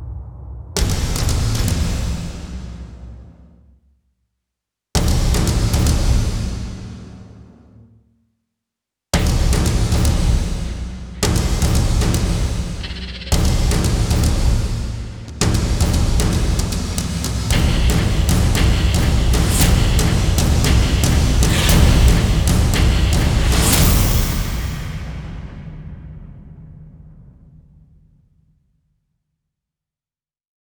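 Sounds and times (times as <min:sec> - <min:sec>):
drum mix: 0:00.8 - 0:03.5, 0:05.0 - 0:07.7, 0:09.2 - 0:27.5.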